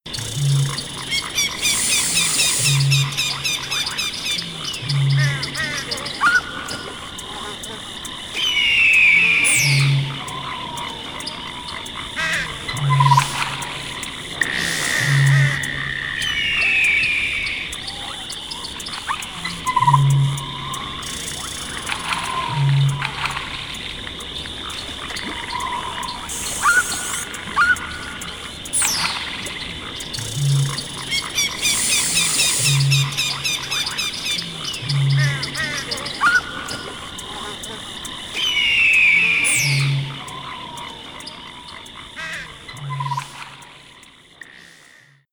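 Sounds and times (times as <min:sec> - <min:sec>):
swamp ambience: 0:00.0 - 0:45.3.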